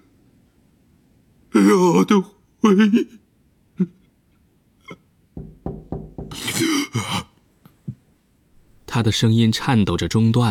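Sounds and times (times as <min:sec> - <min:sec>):
speech: 0:01.6 - 0:03.2, 0:03.8 - 0:04.0, 0:09.0 - 0:10.4
knocking on a door: 0:05.4 - 0:06.6.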